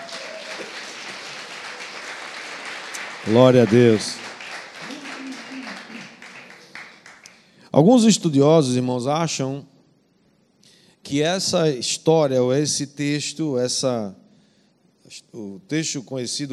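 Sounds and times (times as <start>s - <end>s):
audience clapping: 0.0s - 7.6s
speech: 3.2s - 4.2s, 7.8s - 9.7s, 11.1s - 14.2s, 15.1s - 16.5s.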